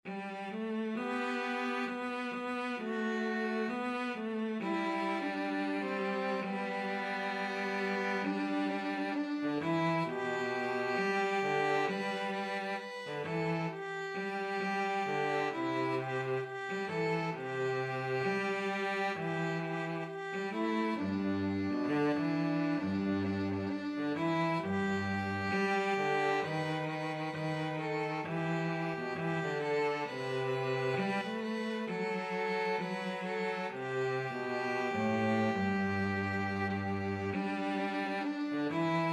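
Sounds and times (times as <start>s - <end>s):
violin and cello duet: 0.0s - 39.1s.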